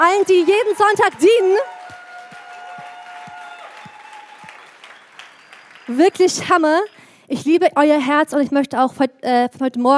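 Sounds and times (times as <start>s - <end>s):
audience applause: 0.0s - 6.4s
speech: 0.1s - 1.8s, 5.9s - 9.9s
loud individual claps: 1.1s - 6.2s.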